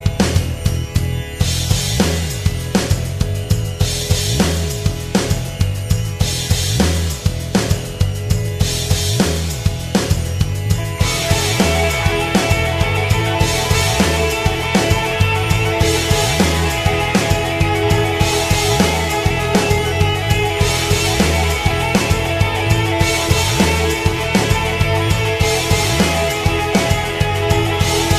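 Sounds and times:
music beat: 0.0s - 28.1s.

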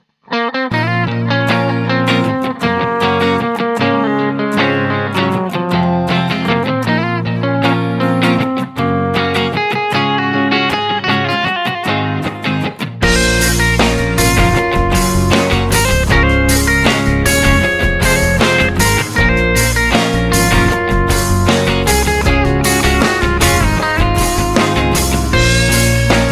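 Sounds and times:
guitar: 0.0s - 26.3s.

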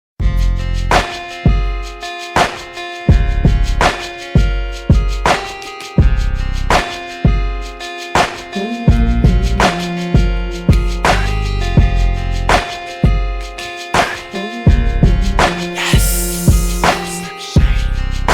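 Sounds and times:
instrumental music: 0.2s - 18.3s.

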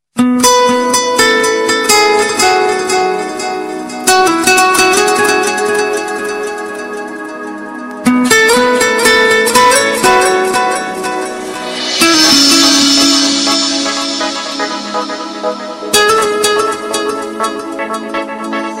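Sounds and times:
guitar: 0.2s - 18.7s.

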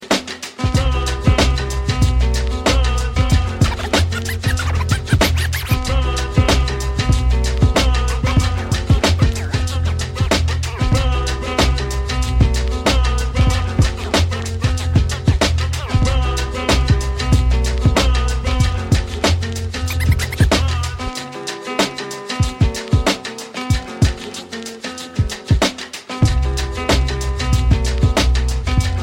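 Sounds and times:
running instrumental music: 0.0s - 29.0s.

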